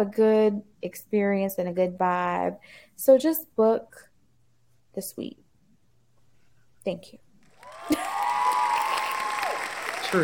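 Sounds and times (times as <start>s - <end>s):
speech: 0.0s - 4.1s, 5.0s - 5.4s, 6.8s - 7.2s
applause sound effect: 7.5s - 10.2s.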